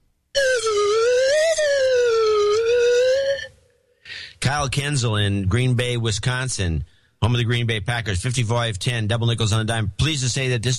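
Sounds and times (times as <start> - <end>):
person whistling a UFO imitation: 0.4 - 3.6
speech: 4.6 - 10.7.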